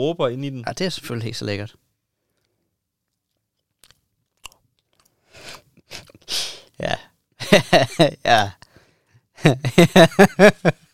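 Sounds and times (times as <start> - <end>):
speech: 0.0 - 1.8, 6.8 - 8.6, 9.4 - 10.8
chewing greasy sour cream and onion potato chips: 2.4 - 6.2.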